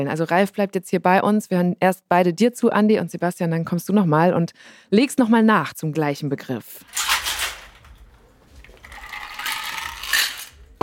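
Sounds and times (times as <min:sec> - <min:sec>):
speech: 0:00.0 - 0:07.1
ice cubes stirring in a drink: 0:08.6 - 0:10.6.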